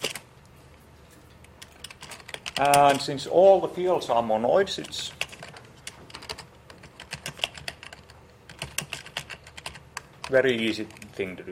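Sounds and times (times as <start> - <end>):
typing code on a computer keyboard: 1.6 - 3.0, 4.8 - 11.1
speech: 2.6 - 5.2, 10.3 - 11.4.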